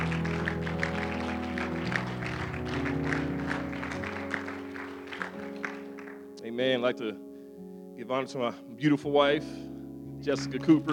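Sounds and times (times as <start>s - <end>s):
audience hand clapping: 0.0s - 6.4s, 10.4s - 10.9s
speech: 6.6s - 7.3s, 8.1s - 10.9s.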